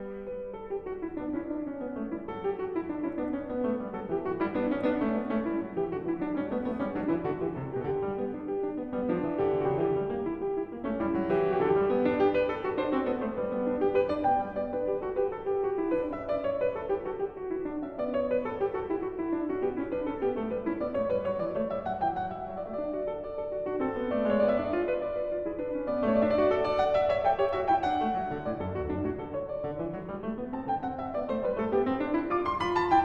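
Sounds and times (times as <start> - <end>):
baroque variation in allegro tempo: 0.0 - 33.0.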